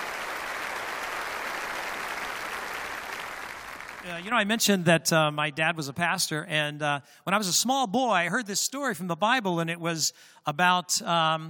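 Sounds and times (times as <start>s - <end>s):
audience applause welcoming a singer back to the stage: 0.0s - 4.3s
speech: 4.0s - 11.4s.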